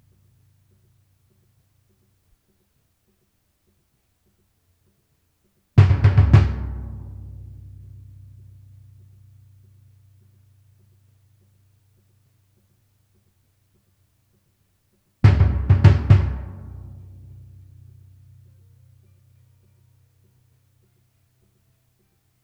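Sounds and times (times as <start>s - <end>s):
timpani: 5.8s - 9.7s, 15.3s - 18.5s.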